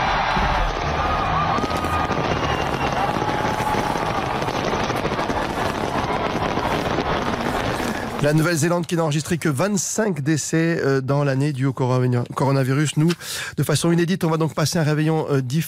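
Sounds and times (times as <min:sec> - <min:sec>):
fireworks in the rain: 0:00.0 - 0:08.8
rain: 0:00.6 - 0:08.3
speech: 0:08.2 - 0:15.6.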